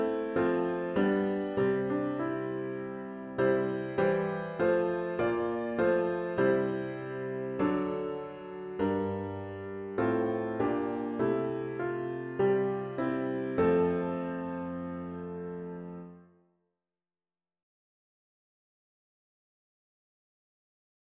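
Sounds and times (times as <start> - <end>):
solo piano: 0.0 - 16.4.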